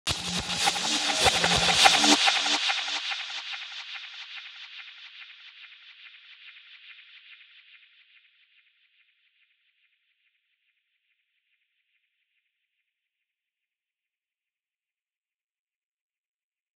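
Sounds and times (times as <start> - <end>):
music beat: 0.1 - 3.7.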